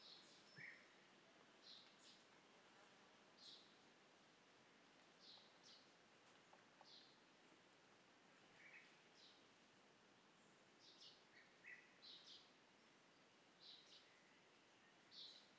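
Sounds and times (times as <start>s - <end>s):
birds at a very old quarry: 0.0s - 15.5s.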